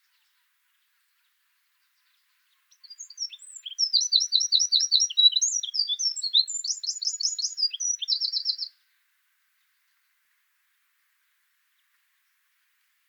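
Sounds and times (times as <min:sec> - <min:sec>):
Eurasian wren singing: 0:02.7 - 0:08.7.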